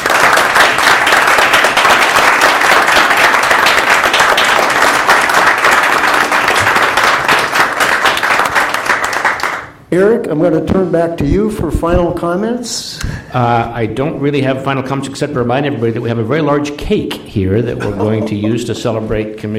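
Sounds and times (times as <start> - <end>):
round of applause: 0.0 - 9.8
speech: 9.9 - 19.5
laughter: 17.8 - 19.0.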